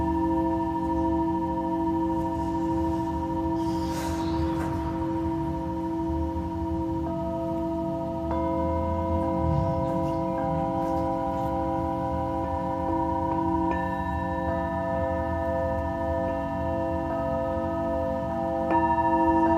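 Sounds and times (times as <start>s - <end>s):
singing bowl ringing: 0.0s - 19.5s
low rumble: 2.6s - 7.5s, 9.1s - 13.1s.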